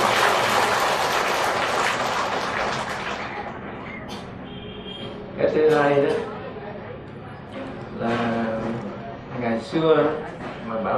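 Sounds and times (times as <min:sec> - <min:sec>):
audience applause: 0:00.0 - 0:03.7
speech: 0:05.5 - 0:06.3, 0:09.7 - 0:10.9.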